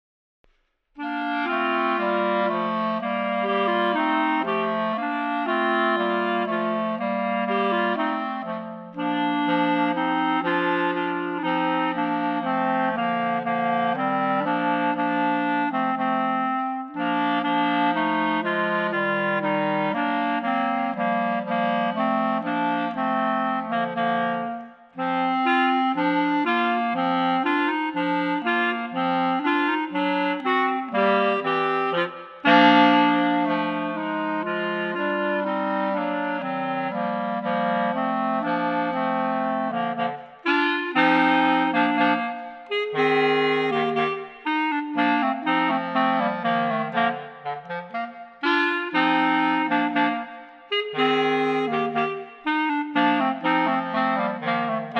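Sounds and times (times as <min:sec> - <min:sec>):
clarinet trio: 0:01.0 - 0:54.9.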